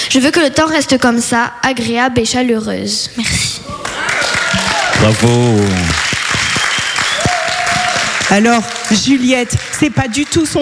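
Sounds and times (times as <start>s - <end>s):
speech: 0.1s - 4.4s, 5.0s - 6.1s, 8.3s - 10.6s
audience applause for a slam poetry performance: 3.7s - 10.6s.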